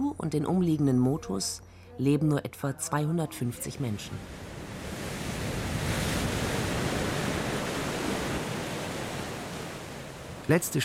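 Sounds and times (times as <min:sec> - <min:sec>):
speech: 0:00.2 - 0:04.5, 0:10.5 - 0:10.8
sea churned up by gusts: 0:03.4 - 0:10.8
wind gusts: 0:03.6 - 0:10.8.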